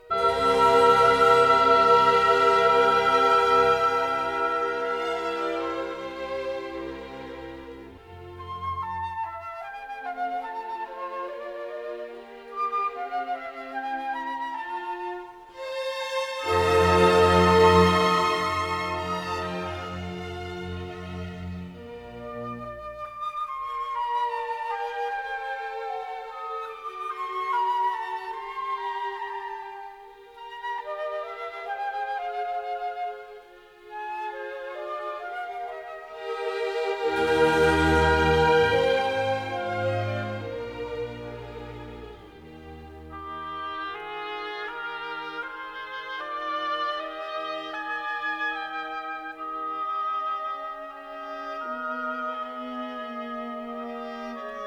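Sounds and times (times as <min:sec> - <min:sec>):
slow classical symphony movement in E flat: 0:00.0 - 0:54.6.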